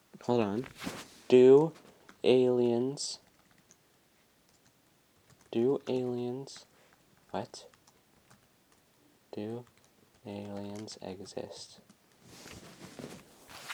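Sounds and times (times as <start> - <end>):
speech: 0.2 - 3.2, 5.5 - 6.7, 7.3 - 7.7, 9.3 - 11.8
computer keyboard typing a web search: 1.4 - 12.2.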